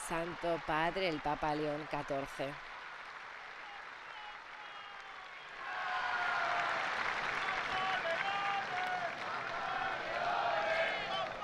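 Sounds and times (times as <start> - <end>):
crowd cheering: 0.0 - 11.4
speech: 0.1 - 2.7
large crowd of faithful chanting in unison: 5.6 - 6.8, 8.0 - 11.4.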